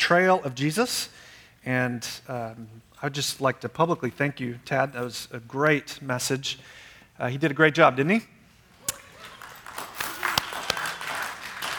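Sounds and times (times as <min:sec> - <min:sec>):
speech: 0:00.0 - 0:08.4
applause: 0:09.0 - 0:11.7.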